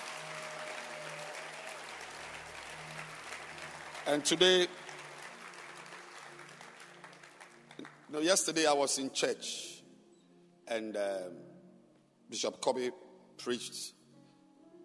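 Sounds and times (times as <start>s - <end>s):
audience clapping hands: 0.0s - 8.1s
speech: 4.0s - 4.8s, 8.2s - 9.7s, 10.7s - 11.5s, 12.3s - 14.0s.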